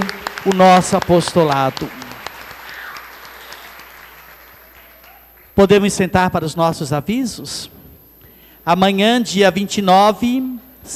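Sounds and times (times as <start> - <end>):
applause: 0.0 - 5.6
speech: 0.4 - 2.0, 5.6 - 7.8, 8.6 - 10.9.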